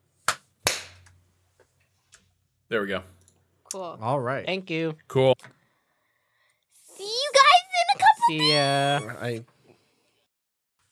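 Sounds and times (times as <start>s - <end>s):
hand clap for audio sync: 0.2s - 1.2s
speech: 2.7s - 5.6s, 8.3s - 9.5s.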